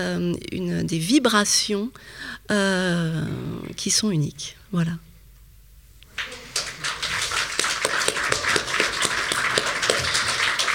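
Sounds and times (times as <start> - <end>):
speech: 0.0 - 5.1
audience applause: 6.1 - 10.7.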